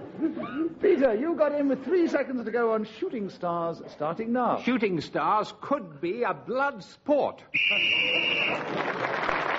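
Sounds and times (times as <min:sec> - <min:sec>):
speech: 0:00.2 - 0:09.4
game show end-of-round whistle: 0:07.5 - 0:08.7.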